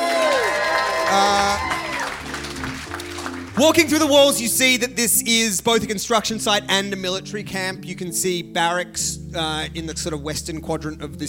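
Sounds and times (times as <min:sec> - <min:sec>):
applause: 0:00.0 - 0:04.1
speech: 0:03.6 - 0:11.2.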